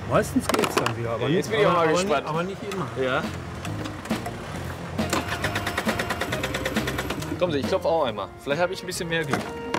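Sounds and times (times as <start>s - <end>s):
speech: 0.1s - 3.5s, 7.4s - 9.7s
scooter engine cranking without catching: 3.3s - 7.4s.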